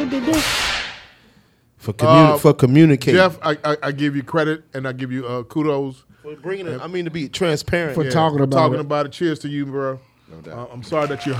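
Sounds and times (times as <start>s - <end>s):
speech: 0.1s - 0.6s, 1.8s - 11.3s
whip lash sound effect: 0.2s - 1.2s.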